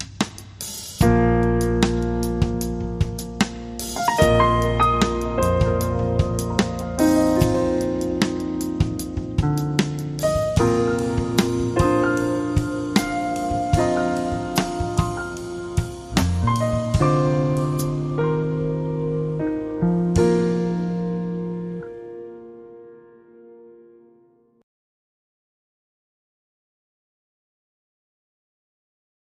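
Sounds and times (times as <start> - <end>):
jazz trio playing: 0.4 - 21.9.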